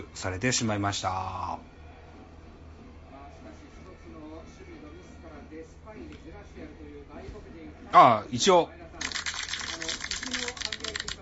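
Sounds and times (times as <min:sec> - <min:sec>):
speech: 0:00.1 - 0:01.7, 0:06.0 - 0:08.8
hands clapping: 0:09.0 - 0:11.2.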